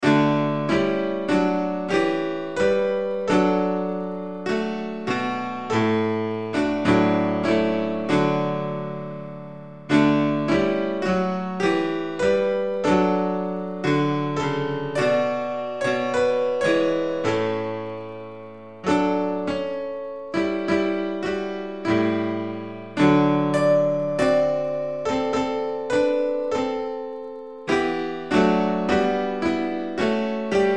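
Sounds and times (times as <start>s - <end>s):
instrumental hymns: 0.0s - 30.7s.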